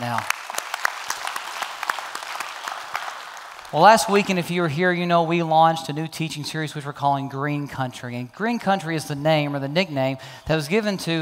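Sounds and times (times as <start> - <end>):
church congregation clapping at the Stone Canyon campus: 0.0 - 4.5
speech: 3.7 - 11.1.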